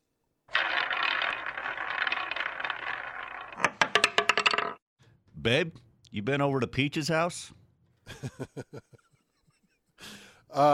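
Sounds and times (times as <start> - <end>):
prize wheel spinning: 0.5 - 4.8
speech: 5.4 - 9.0, 10.6 - 10.7
laughter: 8.1 - 9.9.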